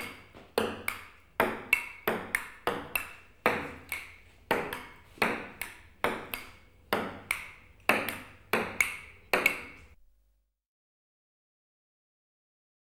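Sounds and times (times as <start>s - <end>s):
ping pong continuous volley: 0.0s - 10.0s.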